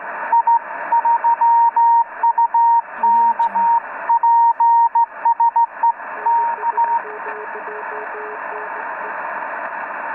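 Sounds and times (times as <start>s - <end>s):
morse code transmission: 0.3s - 5.7s, 6.3s - 8.3s.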